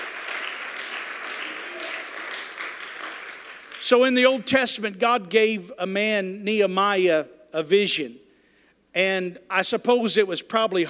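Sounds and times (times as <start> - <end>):
audience clapping hands: 0.0 - 4.2
speech: 3.9 - 8.2, 9.0 - 10.8.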